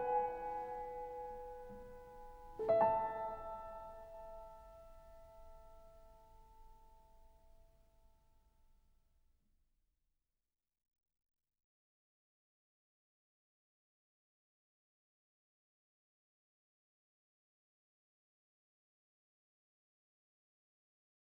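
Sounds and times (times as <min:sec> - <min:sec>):
solo piano: 0:00.0 - 0:07.7.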